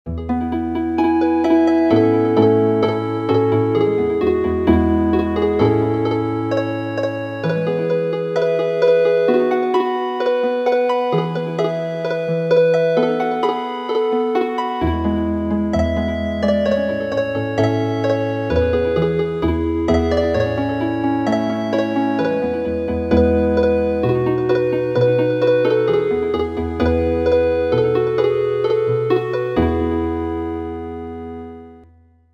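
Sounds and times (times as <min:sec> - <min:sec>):
healing harp: 0:00.1 - 0:31.8.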